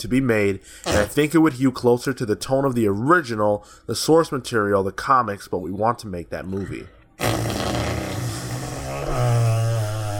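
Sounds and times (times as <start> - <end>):
speech: 0.0 - 7.0
mouth fart noise blown into a microphone: 0.8 - 1.2, 7.2 - 10.1.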